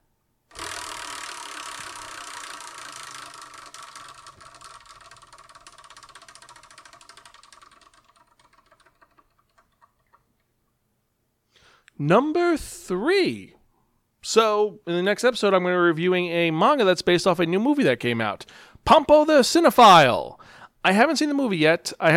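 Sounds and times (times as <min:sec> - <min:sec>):
selection wheel spinning: 0:00.6 - 0:10.2
speech: 0:12.0 - 0:13.6, 0:14.3 - 0:22.1.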